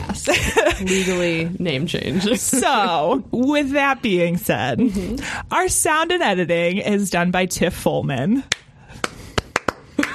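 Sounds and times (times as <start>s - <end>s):
speech: 0.2s - 8.6s
slow clap: 8.5s - 10.1s.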